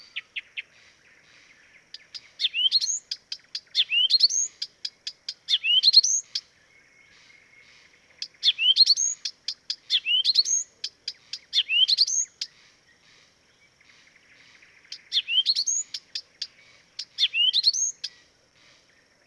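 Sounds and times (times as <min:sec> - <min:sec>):
Blyth's reed warbler singing: 0:00.0 - 0:19.2.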